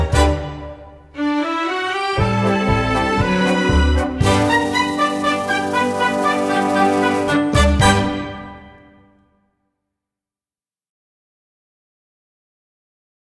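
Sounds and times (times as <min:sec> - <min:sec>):
backing track: 0:00.0 - 0:09.0.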